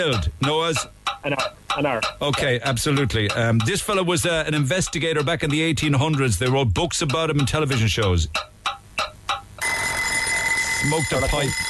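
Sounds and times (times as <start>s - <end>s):
speech: 0.0s - 8.5s, 10.8s - 11.6s
quiz bell ringing: 9.6s - 11.6s.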